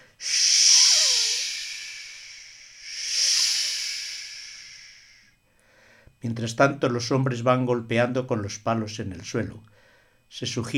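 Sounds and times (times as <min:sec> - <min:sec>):
breathy whistling imitating the wind: 0:00.0 - 0:05.4
speech: 0:06.2 - 0:09.7, 0:10.4 - 0:10.7.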